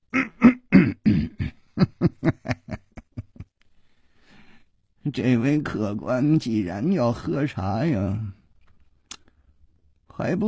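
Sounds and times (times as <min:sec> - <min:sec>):
voice imitating a shopkeeper's soft cough: 0:00.1 - 0:01.6
laughter: 0:01.8 - 0:03.5
speech: 0:05.2 - 0:08.4, 0:10.2 - 0:10.4.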